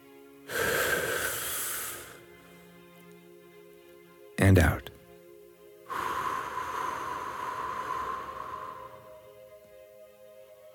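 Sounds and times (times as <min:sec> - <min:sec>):
deep breath in: 0:00.5 - 0:02.7, 0:05.9 - 0:09.4
speech: 0:04.4 - 0:04.9.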